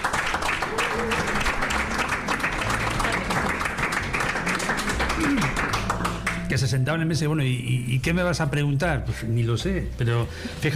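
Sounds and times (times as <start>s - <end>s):
audience applause: 0.0s - 6.6s
speech: 6.6s - 10.7s.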